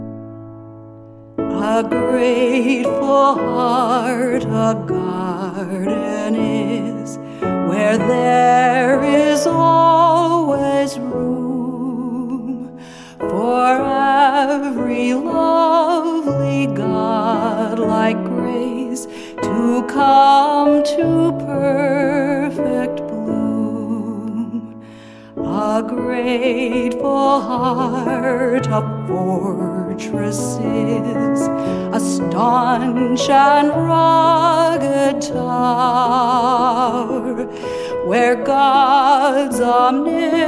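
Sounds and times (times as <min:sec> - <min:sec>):
vocalist singing a Christian Science hymn: 0:01.5 - 0:40.4.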